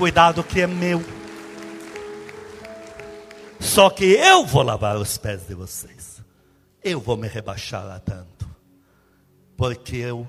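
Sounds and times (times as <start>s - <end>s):
speech: 0.0s - 1.2s, 3.6s - 6.1s, 6.8s - 8.3s, 9.6s - 10.2s
audience applause: 0.0s - 4.0s.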